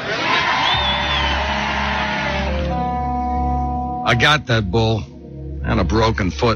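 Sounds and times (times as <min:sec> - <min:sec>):
crowd cheering: 0:00.0 - 0:02.9
speech: 0:04.1 - 0:06.5.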